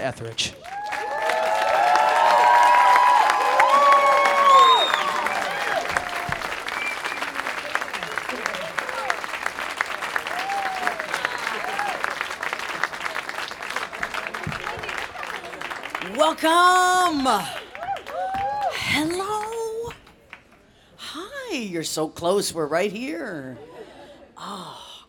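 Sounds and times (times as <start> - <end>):
speech: 0.0 - 0.8, 16.3 - 17.6, 21.6 - 23.7
audience applause at an Apple Store event: 0.0 - 20.6
whistles: 4.0 - 7.5.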